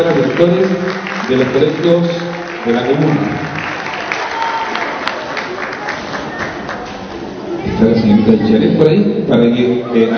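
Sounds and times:
speech: 0.0 - 3.6, 8.0 - 10.1
audience applause: 0.0 - 7.1.

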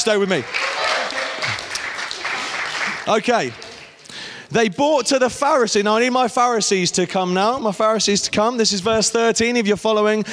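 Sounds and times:
speech: 0.0 - 0.6, 3.1 - 3.6, 4.5 - 10.3
audience applause: 0.2 - 4.2.

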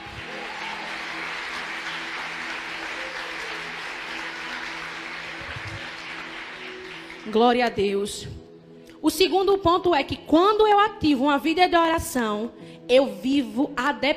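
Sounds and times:
audience applauding: 0.0 - 7.4
speech: 7.3 - 8.4, 9.0 - 14.1.

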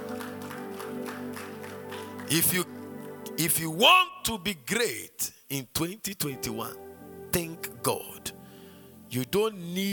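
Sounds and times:
crowd cheering or shout: 0.0 - 2.3
audience clapping: 0.0 - 3.4
speech: 2.3 - 2.8, 3.4 - 8.4, 9.1 - 9.9.

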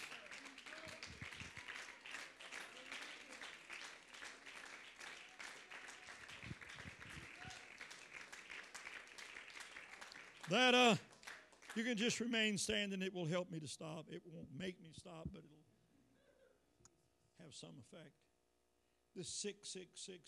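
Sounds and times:
audience clapping hands: 0.0 - 12.3
speech: 10.5 - 11.1, 11.8 - 15.6, 17.5 - 18.2, 19.2 - 20.2.

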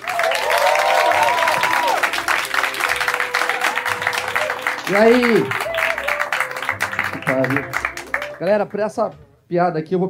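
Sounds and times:
whoops and cheers: 0.0 - 6.9
audience applause: 0.0 - 8.9
speech: 4.9 - 5.6, 7.3 - 10.0.

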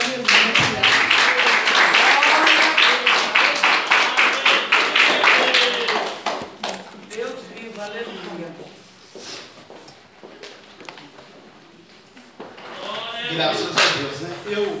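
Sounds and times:
audience clapping: 0.0 - 7.8
faint voices: 0.0 - 14.7.

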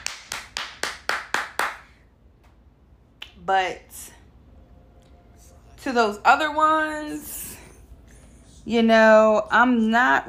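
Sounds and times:
lone set of hand claps: 0.0 - 2.6
speech: 3.5 - 4.2, 5.8 - 7.4, 8.7 - 10.2.

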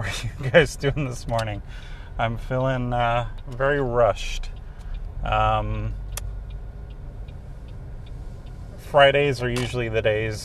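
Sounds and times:
speech: 0.0 - 4.6, 5.2 - 6.0, 8.9 - 10.4
car on a short morning commute to work: 0.0 - 10.4
sharp click: 9.5 - 9.9.

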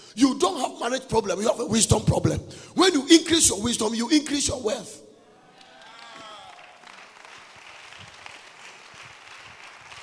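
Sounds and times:
speech: 0.2 - 5.1
audience clapping: 5.5 - 10.0.

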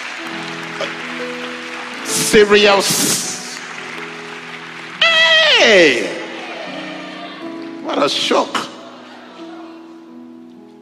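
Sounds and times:
crowd clapping: 0.0 - 8.7
speech: 0.8 - 1.4, 2.2 - 3.3, 5.6 - 6.2, 7.9 - 8.6.

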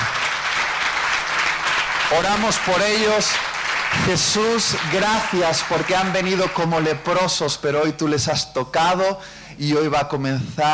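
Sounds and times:
audience applause: 0.0 - 7.0
speech: 2.1 - 10.7.

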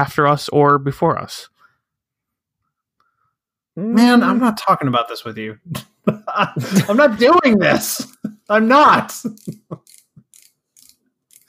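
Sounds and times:
speech: 0.0 - 1.6, 3.8 - 10.0
laughter: 5.7 - 9.9
mechanical pencil clicking: 9.4 - 11.4.

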